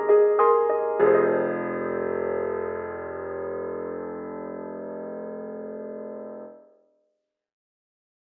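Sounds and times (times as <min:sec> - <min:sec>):
lo-fi grand piano: 0:00.0 - 0:06.6.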